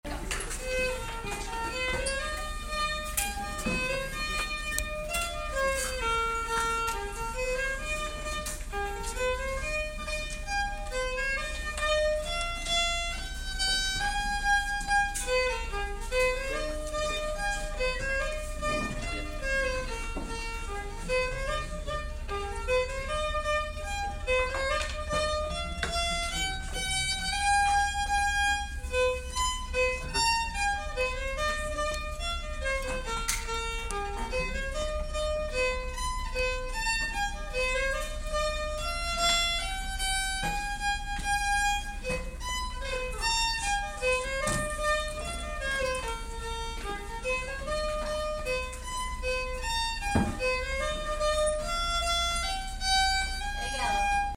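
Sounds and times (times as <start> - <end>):
polka music: 0.0 - 54.3.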